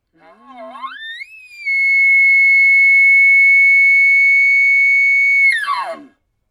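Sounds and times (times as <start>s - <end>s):
bugle call blown on a call tube: 0.2s - 6.1s.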